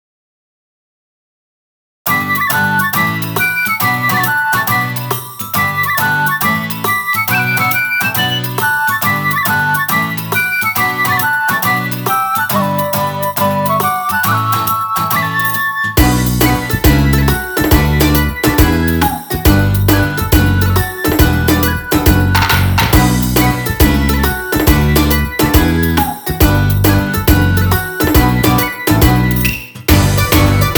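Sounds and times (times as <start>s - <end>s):
instrumental music: 2.1s - 30.7s.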